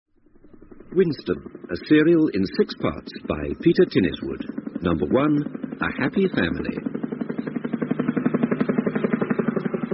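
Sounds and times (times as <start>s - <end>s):
helicopters flying overhead: 0.1s - 9.9s
speech: 1.0s - 6.9s.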